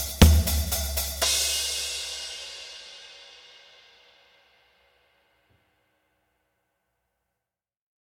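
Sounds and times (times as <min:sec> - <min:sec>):
guitar beat: 0:00.0 - 0:01.6.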